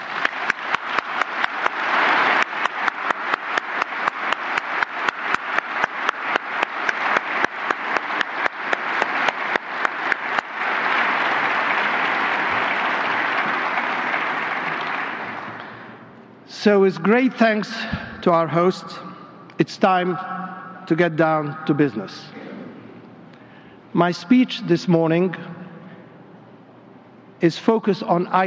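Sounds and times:
audience applause: 0.0s - 16.0s
speech: 16.6s - 20.3s, 20.9s - 22.4s, 24.0s - 25.5s, 27.4s - 28.4s.

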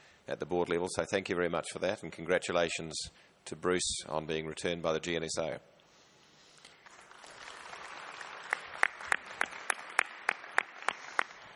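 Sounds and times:
speech: 0.3s - 5.7s
crowd applause in the room: 6.8s - 11.5s
louder evenly spaced sharp claps: 6.8s - 11.5s.

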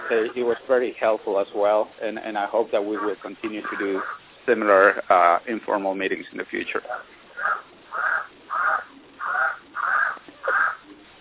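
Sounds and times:
duck or bird calling: 0.0s - 0.6s, 2.5s - 5.1s, 6.8s - 11.1s
speech: 0.1s - 7.2s.

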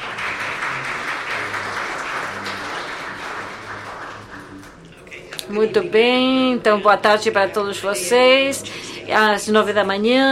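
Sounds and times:
audience applause: 0.0s - 4.9s
speech: 5.5s - 10.2s.

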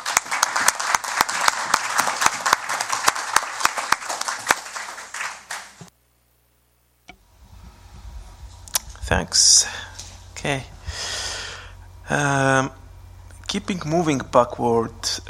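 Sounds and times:
round of applause: 0.0s - 5.9s
speech: 9.1s - 9.8s, 10.4s - 11.1s, 12.1s - 12.8s, 13.5s - 15.2s.

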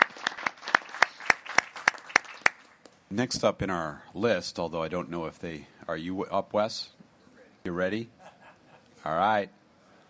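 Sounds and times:
audience applause: 0.0s - 2.8s
speech: 3.1s - 7.0s, 7.6s - 8.2s, 9.0s - 9.6s.

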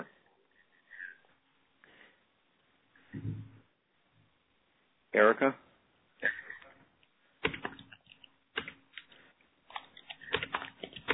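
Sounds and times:
speech: 5.2s - 5.6s
someone typing on a keyboard: 7.4s - 9.1s, 9.8s - 11.1s.

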